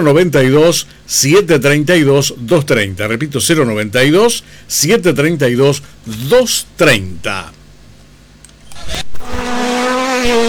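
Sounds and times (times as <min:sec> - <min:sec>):
speech: 0:00.0 - 0:07.6, 0:10.2 - 0:10.4
rally car engines roaring: 0:08.7 - 0:10.4.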